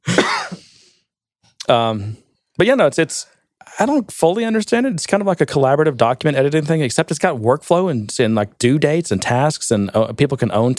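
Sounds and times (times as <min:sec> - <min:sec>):
person coughing after swallowing wrong: 0:00.0 - 0:00.8
speech: 0:01.7 - 0:10.7.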